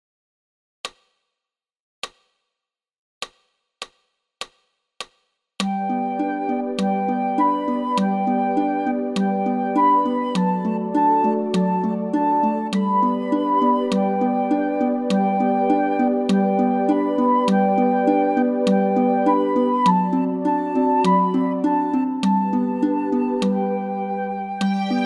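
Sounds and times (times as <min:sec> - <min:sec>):
musical notes: 0:05.6 - 0:25.0.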